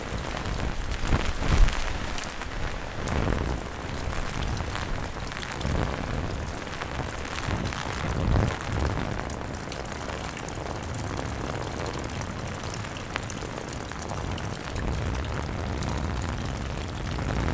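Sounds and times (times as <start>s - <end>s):
umbrella movement: 0.0s - 5.4s
rain on an umbrella: 0.0s - 17.5s
wind: 0.0s - 17.5s.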